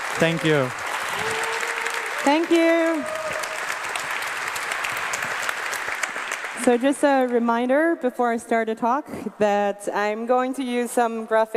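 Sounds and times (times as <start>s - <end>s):
crowd applauding: 0.0s - 7.5s
speech: 0.2s - 1.3s, 2.2s - 3.3s, 6.6s - 11.5s.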